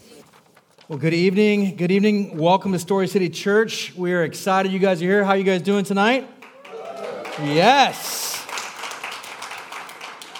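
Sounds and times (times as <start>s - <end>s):
speech: 0.9s - 6.4s, 7.4s - 8.2s
subdued audience clapping: 6.4s - 10.3s.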